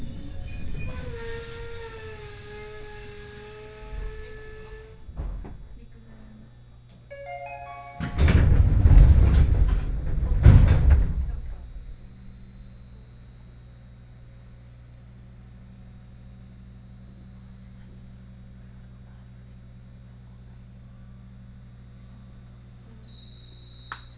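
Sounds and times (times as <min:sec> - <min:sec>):
rushing burst with short rising squeal: 0:00.0 - 0:05.1
Senseki Line local train motor whine: 0:00.0 - 0:19.2, 0:21.0 - 0:24.1.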